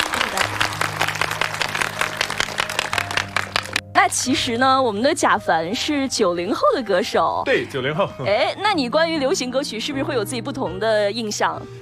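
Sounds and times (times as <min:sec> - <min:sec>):
audience applause: 0:00.0 - 0:03.9
speech: 0:04.1 - 0:11.8.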